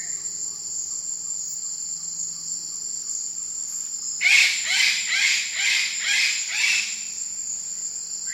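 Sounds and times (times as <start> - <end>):
Eclectus parrot giving harsh rasping screeches in Indonesia: 4.2 - 7.0.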